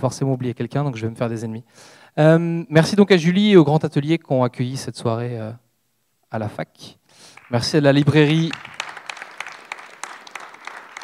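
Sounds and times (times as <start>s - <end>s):
speech: 0.0s - 5.6s, 6.3s - 8.8s
scattered audience applause at an evening event at a university: 7.3s - 11.0s.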